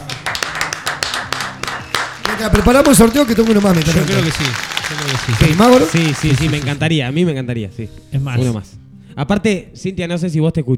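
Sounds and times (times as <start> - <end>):
audience clapping: 0.0 - 6.9
speech: 2.4 - 10.7.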